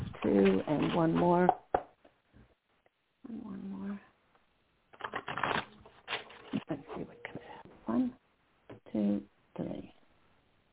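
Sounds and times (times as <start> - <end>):
tarot cards shuffling: 0.0 - 1.4, 5.0 - 7.1
speech: 0.2 - 1.6.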